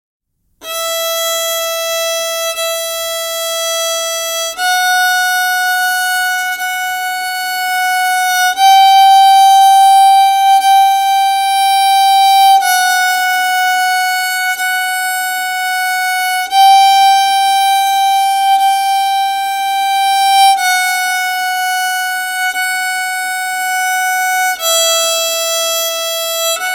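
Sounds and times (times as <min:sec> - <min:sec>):
fingering on the first string, G, without metronome: 0:00.6 - 0:26.7.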